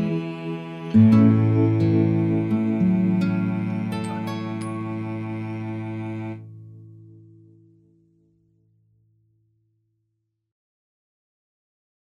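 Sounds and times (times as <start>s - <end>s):
instrumental music: 0.0s - 8.2s.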